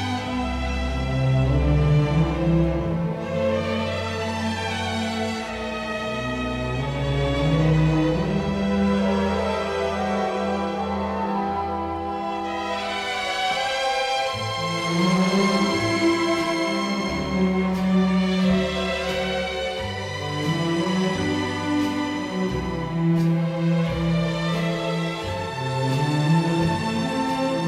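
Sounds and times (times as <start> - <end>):
string orchestra playing: 0.0 - 27.6.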